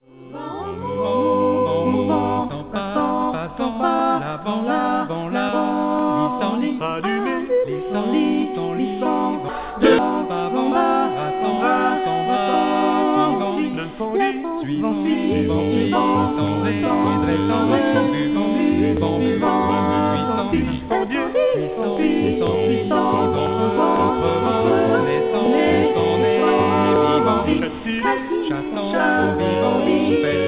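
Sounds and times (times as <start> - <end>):
vocals: 0.0 - 30.4.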